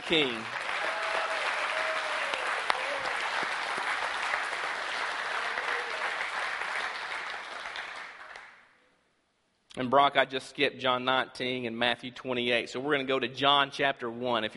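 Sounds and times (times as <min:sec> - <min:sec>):
audience applause: 0:00.0 - 0:08.7
speech: 0:00.1 - 0:00.6, 0:09.8 - 0:14.5.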